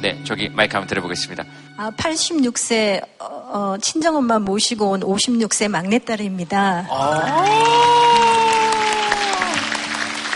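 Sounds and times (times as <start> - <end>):
speech: 0.0 - 8.5
audience applause: 7.0 - 10.3.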